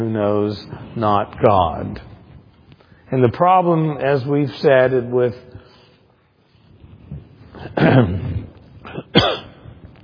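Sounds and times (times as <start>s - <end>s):
speech: 0.0s - 2.1s, 3.1s - 5.6s, 7.6s - 9.4s
throat clearing: 7.7s - 9.6s
person coughing after water went down the wrong pipe: 7.7s - 9.7s.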